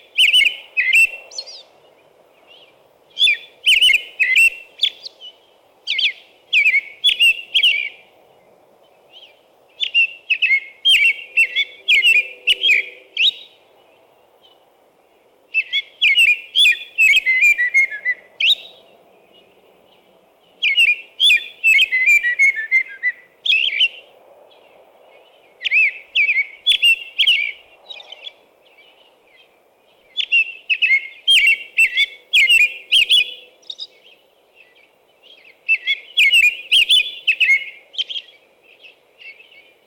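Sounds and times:
American robin singing: 0:00.0 - 0:39.8.

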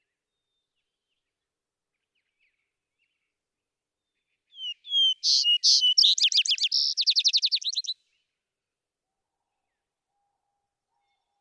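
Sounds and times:
vesper sparrow singing: 0:04.6 - 0:08.0.

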